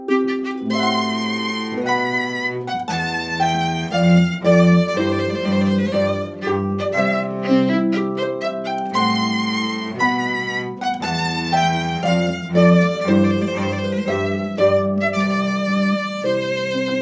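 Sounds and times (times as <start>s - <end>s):
wedding march music: 0.2s - 16.9s.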